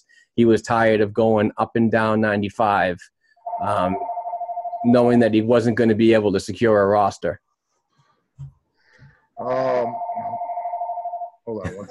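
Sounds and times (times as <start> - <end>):
speech: 0.4 - 4.1, 4.8 - 7.4, 9.4 - 10.4, 11.5 - 11.8
landline house phone ringing: 3.4 - 4.9, 9.8 - 11.4.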